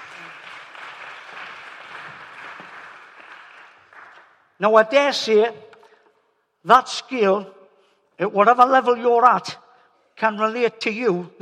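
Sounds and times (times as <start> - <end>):
audience applause: 0.0 - 4.4
speech: 4.6 - 5.7, 6.6 - 7.6, 8.2 - 9.6, 10.2 - 11.4.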